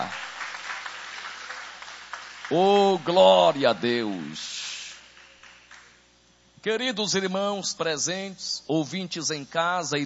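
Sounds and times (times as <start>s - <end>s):
church congregation applauding: 0.0s - 6.1s
speech: 2.5s - 4.5s, 6.6s - 10.0s.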